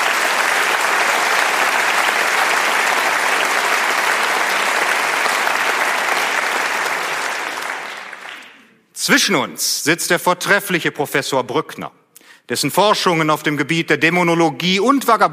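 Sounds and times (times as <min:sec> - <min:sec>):
audience applause: 0:00.0 - 0:08.7
speech: 0:09.0 - 0:15.3.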